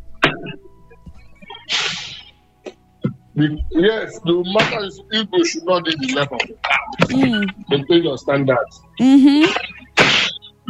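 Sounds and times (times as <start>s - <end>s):
sneeze: 1.7s - 2.3s, 9.5s - 10.6s
speech: 3.4s - 9.6s.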